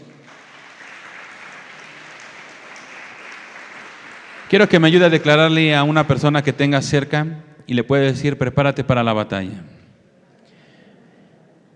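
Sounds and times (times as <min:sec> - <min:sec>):
audience clapping: 0:00.0 - 0:06.7
speech: 0:04.5 - 0:09.7.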